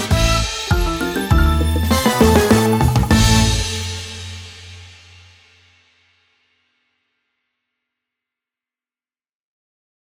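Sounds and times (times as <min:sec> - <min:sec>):
piano: 0:00.0 - 0:04.5
orchestra playing: 0:00.0 - 0:04.7.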